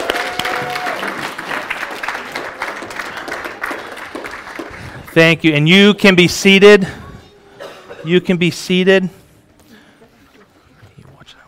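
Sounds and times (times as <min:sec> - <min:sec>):
church audience applause: 0:00.0 - 0:05.4
speech: 0:05.2 - 0:07.0, 0:08.0 - 0:09.2.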